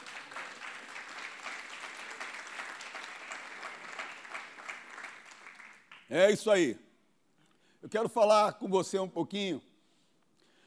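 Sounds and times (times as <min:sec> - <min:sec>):
audience applause: 0:00.0 - 0:06.0
speech: 0:06.1 - 0:06.8, 0:07.8 - 0:09.7.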